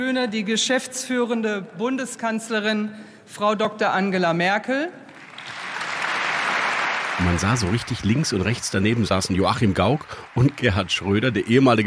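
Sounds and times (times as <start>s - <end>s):
speech: 0.0s - 5.0s, 7.2s - 11.8s
large applause in parliament chamber: 5.1s - 11.8s.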